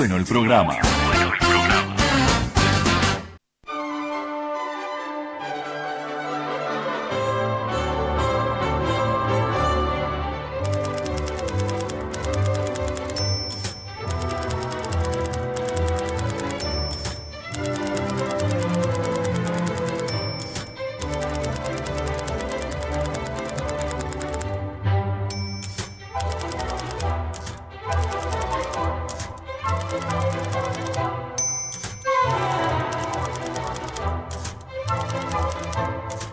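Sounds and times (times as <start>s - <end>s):
lively orchestral music: 0.8s - 36.3s
rapid typewriter clacking in a symphonic typewriter piece: 10.7s - 24.5s, 25.3s - 36.3s
typewriter bell ding: 10.9s - 22.6s, 25.3s - 27.5s, 30.5s - 32.4s.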